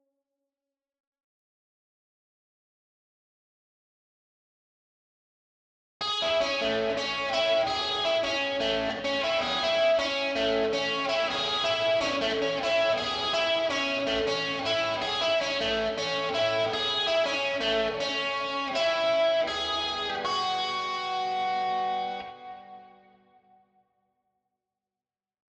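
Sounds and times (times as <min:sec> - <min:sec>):
guitar: 0:06.0 - 0:23.8.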